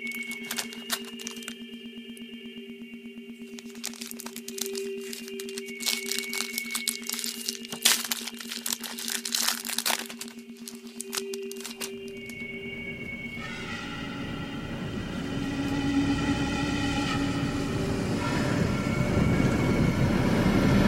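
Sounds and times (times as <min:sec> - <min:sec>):
trading card pack wrapper crinkling and tearing: 0:00.0 - 0:01.6, 0:03.5 - 0:12.4
steady tonal hum: 0:00.0 - 0:20.8.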